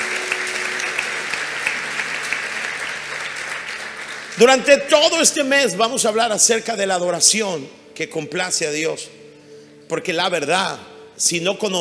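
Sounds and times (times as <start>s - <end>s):
audience applause: 0.0s - 4.9s
speech: 4.4s - 9.2s, 9.9s - 11.7s.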